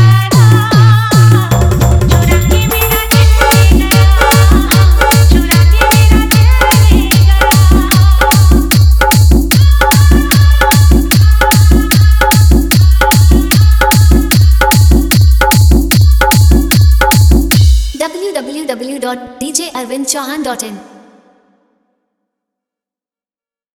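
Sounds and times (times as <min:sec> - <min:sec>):
hard vibration bass: 0:00.0 - 0:17.9.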